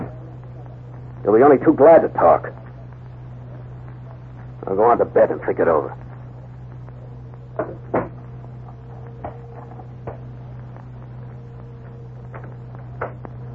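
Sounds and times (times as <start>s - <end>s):
steady low hum: 0.0s - 13.5s
speech: 1.2s - 2.6s, 4.7s - 6.0s
doors thudding shut: 7.6s - 8.2s.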